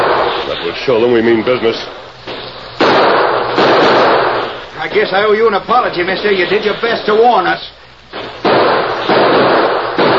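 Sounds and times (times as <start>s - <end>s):
loud gunshots: 0.0s - 0.7s, 1.8s - 4.7s, 8.1s - 10.1s
speech: 0.6s - 2.6s, 4.8s - 8.2s.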